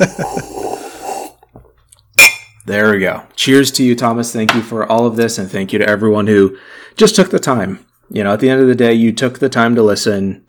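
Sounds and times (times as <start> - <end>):
loud sip of rum and coke: 0.0 - 1.8
speech: 2.7 - 10.4.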